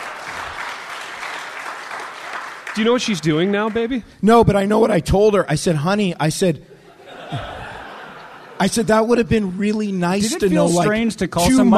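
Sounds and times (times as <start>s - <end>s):
audience applause: 0.0s - 4.0s
speech: 2.8s - 6.7s, 7.3s - 7.5s, 8.6s - 11.7s
laughter: 6.8s - 9.3s, 10.2s - 11.7s.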